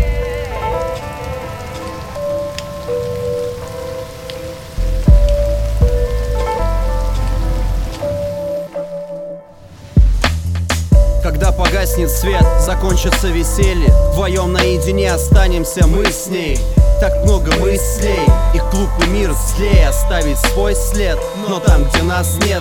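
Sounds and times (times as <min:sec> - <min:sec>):
heavy rain falling: 0:00.0 - 0:22.5
speech: 0:12.0 - 0:22.5.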